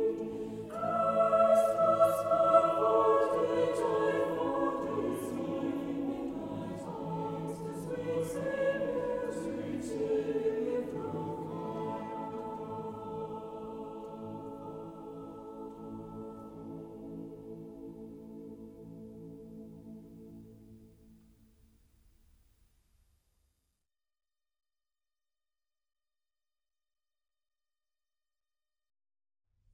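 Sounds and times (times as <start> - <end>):
Korean folk melody lullaby: 0.0 - 20.2.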